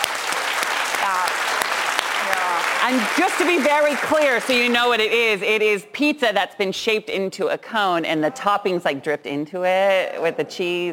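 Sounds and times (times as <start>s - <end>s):
crowd clapping: 0.0s - 5.0s
speech: 2.8s - 10.9s.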